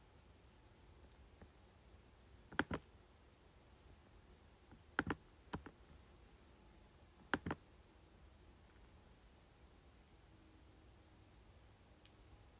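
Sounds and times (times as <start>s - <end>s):
low steady hush: 0.0s - 12.5s
keyboard and mouse clicks: 2.5s - 2.8s, 4.7s - 5.8s, 7.3s - 7.6s.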